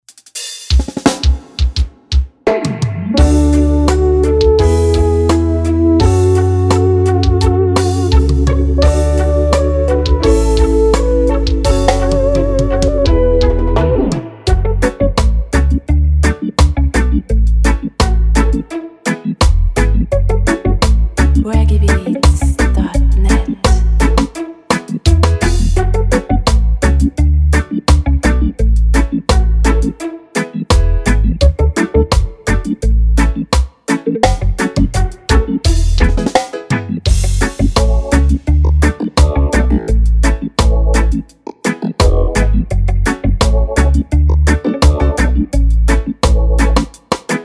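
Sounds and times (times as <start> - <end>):
reggae drummer riddim: 0.0 - 47.4.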